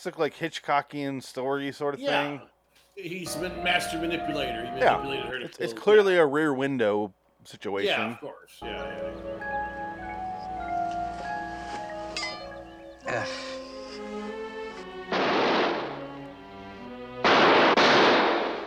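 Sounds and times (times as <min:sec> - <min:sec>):
speech: 0:00.0 - 0:09.5, 0:13.1 - 0:13.5
tonal music: 0:03.1 - 0:05.8, 0:08.6 - 0:18.3
gunshots: 0:15.1 - 0:16.2, 0:17.2 - 0:18.6.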